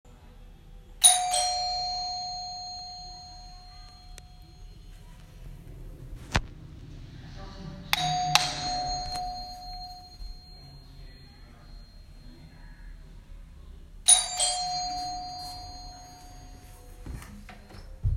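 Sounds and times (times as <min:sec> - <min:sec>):
doorbell: 0:01.0 - 0:05.2, 0:07.9 - 0:12.8, 0:14.1 - 0:18.0.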